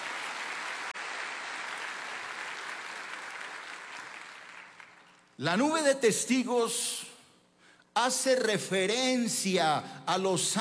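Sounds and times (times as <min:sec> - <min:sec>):
audience applause: 0:00.0 - 0:05.2
speech: 0:05.4 - 0:07.1, 0:08.0 - 0:10.5.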